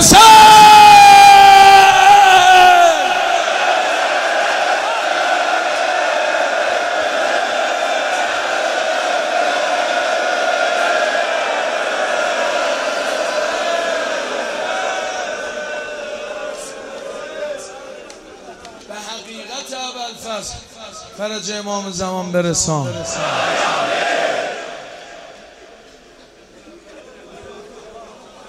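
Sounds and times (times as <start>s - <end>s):
crowd of men and women shouting at a religious gathering: 0.0s - 18.5s, 23.0s - 25.8s
speech: 21.3s - 23.6s.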